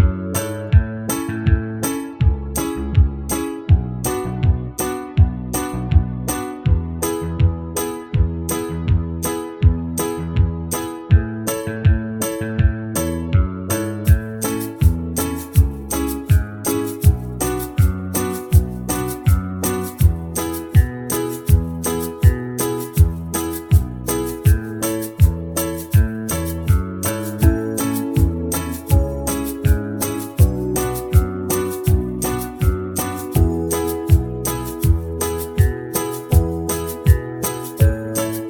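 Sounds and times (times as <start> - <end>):
very slow banjo backing track: 0.0 - 38.4.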